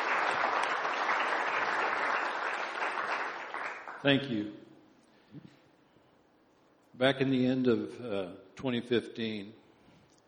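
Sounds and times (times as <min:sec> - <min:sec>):
audience applause: 0:00.0 - 0:04.1
speech: 0:04.0 - 0:04.7, 0:05.3 - 0:05.6, 0:07.0 - 0:09.6.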